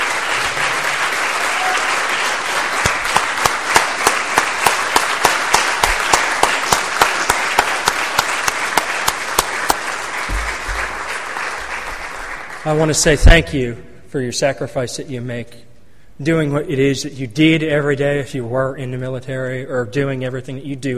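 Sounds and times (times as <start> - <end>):
audience applause: 0.0 - 13.0
speech: 12.7 - 20.9.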